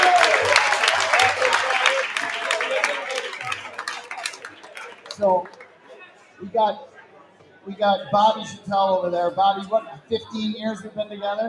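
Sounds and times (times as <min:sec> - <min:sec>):
audience applause for coaching staff: 0:00.0 - 0:05.8
speech: 0:06.5 - 0:06.9, 0:07.6 - 0:11.4.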